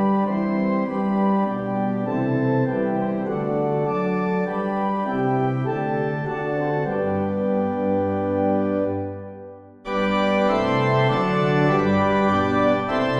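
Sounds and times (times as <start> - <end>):
organ playing a hymn: 0.0 - 13.1.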